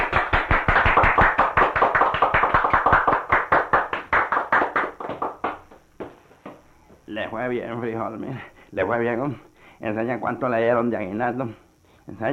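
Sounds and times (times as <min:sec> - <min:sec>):
applause from a small group: 0:00.0 - 0:05.9
speech: 0:07.3 - 0:12.3.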